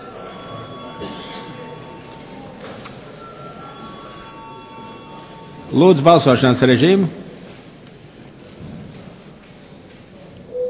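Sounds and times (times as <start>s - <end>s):
parliament chamber bell ringing: 0.0s - 6.6s
murmur of voices: 0.0s - 10.6s
speech: 5.7s - 7.2s.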